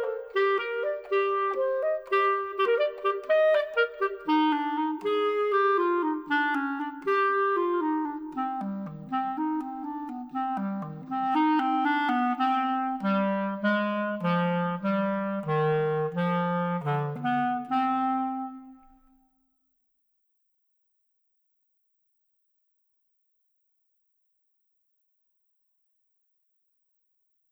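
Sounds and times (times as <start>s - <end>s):
clarinet: 0.0s - 19.2s.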